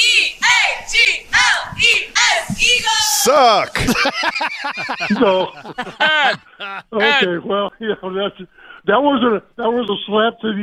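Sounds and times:
cheer squad chanting in unison: 0.0 - 3.8
laughter: 3.0 - 7.4
speech: 3.3 - 10.6.

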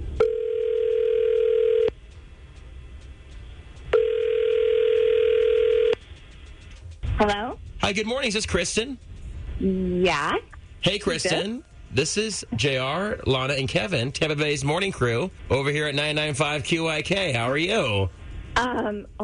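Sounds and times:
telephone ringback tones on an outgoing call: 0.2 - 1.9, 3.9 - 5.9
speech: 7.9 - 19.2.

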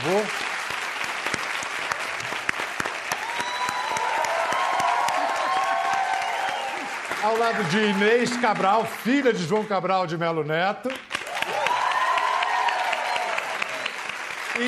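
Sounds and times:
audience applause: 0.0 - 9.7, 10.9 - 14.6
speech: 7.2 - 11.1.

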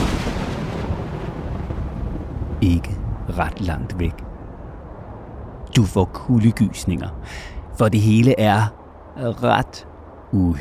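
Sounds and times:
lightning strike thunder crash: 0.0 - 5.6
speech: 2.6 - 4.2, 5.8 - 10.6.

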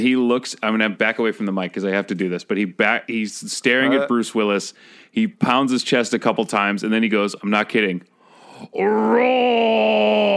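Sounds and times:
speech: 0.0 - 10.3
man imitating a roar: 8.7 - 10.3.

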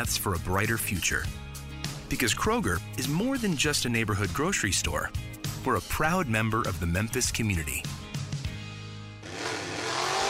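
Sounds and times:
speech: 0.0 - 8.0
car engine revving: 9.2 - 10.2.

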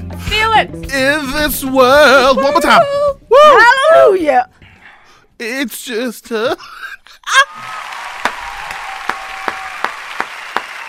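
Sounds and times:
speech: 0.1 - 4.6, 5.4 - 7.8
audience clapping after gospel performance: 7.5 - 10.8.

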